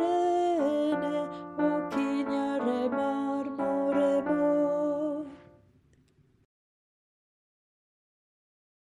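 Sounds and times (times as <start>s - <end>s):
mezzo voice singing chorale: 0.0s - 5.6s.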